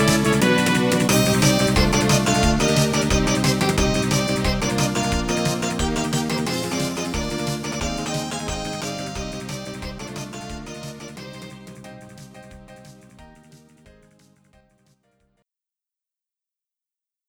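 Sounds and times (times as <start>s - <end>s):
OPL4 FM synthesizer music: 0.0s - 13.8s.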